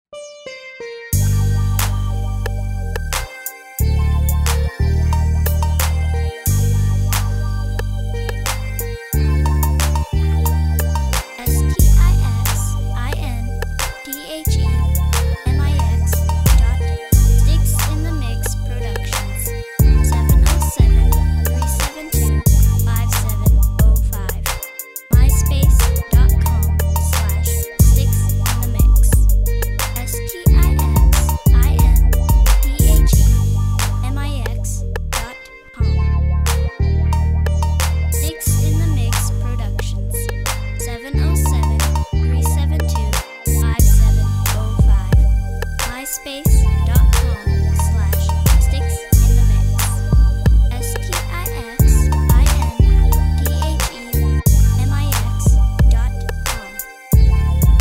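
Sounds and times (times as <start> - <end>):
music beat: 1.2 - 57.7.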